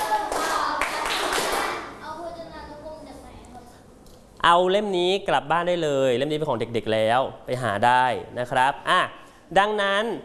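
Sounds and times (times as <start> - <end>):
sharp hand claps: 0.0 - 1.9
speech: 4.4 - 10.2.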